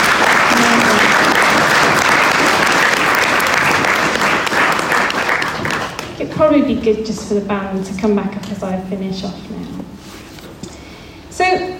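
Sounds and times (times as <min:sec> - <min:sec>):
audience applause: 0:00.0 - 0:06.2
speech: 0:06.5 - 0:10.0, 0:11.5 - 0:11.7.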